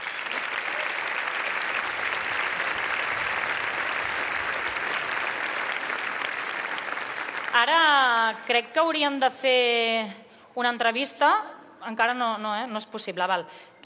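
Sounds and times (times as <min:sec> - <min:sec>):
audience applause: 0:00.0 - 0:07.9
speech: 0:07.6 - 0:13.8.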